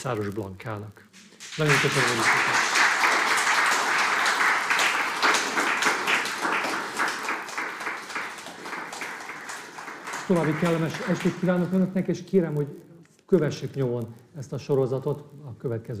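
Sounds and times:
speech: 0:00.0 - 0:02.6, 0:10.3 - 0:15.9
audience applause: 0:01.2 - 0:11.8.

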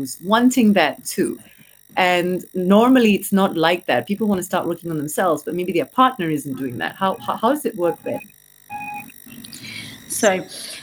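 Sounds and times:
speech: 0:00.0 - 0:08.4, 0:10.2 - 0:10.8
electronic beep: 0:07.0 - 0:10.1.

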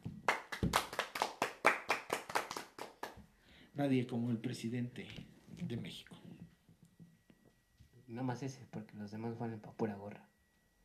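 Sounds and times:
hand claps: 0:00.0 - 0:03.3
speech: 0:03.8 - 0:06.2, 0:08.1 - 0:10.3.

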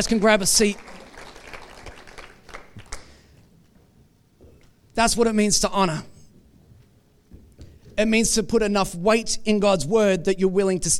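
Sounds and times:
speech: 0:00.0 - 0:01.0, 0:05.0 - 0:06.1, 0:08.0 - 0:10.9
audience applause: 0:00.0 - 0:03.3.

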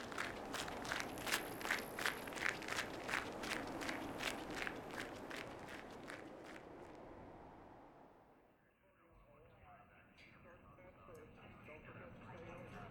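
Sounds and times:
running footsteps: 0:00.0 - 0:07.0.

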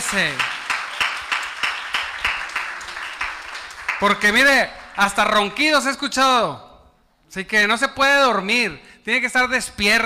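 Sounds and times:
audience clapping in a steady rhythm: 0:00.0 - 0:05.6
speech: 0:00.1 - 0:00.6, 0:04.0 - 0:06.7, 0:07.3 - 0:10.0.

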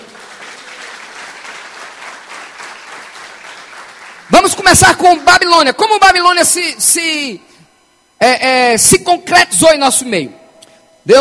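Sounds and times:
audience applause: 0:00.0 - 0:04.6
speech: 0:04.3 - 0:07.5, 0:08.2 - 0:10.4.

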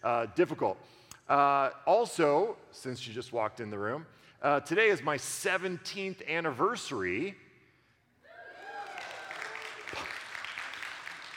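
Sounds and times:
speech: 0:00.0 - 0:07.4
audience applause: 0:08.6 - 0:11.3.

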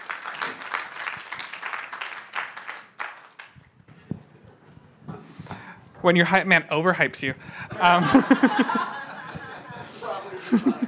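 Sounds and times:
audience clapping: 0:00.0 - 0:04.7
speech: 0:06.0 - 0:08.9, 0:10.5 - 0:10.8
laughter: 0:07.6 - 0:10.8.

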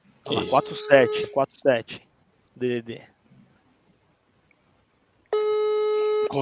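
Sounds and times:
telephone line ringing tone: 0:00.3 - 0:01.3, 0:05.4 - 0:06.4
speech: 0:00.3 - 0:03.1.

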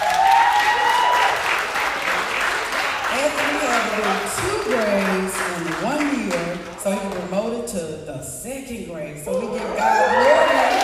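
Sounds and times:
audience applause: 0:00.0 - 0:06.8, 0:09.6 - 0:10.8.

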